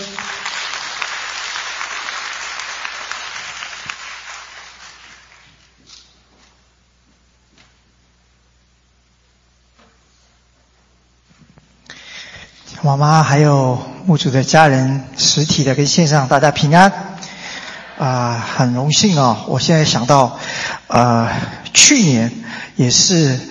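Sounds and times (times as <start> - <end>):
audience applause: 0.0 - 5.7
speech: 12.9 - 17.1, 18.0 - 23.4.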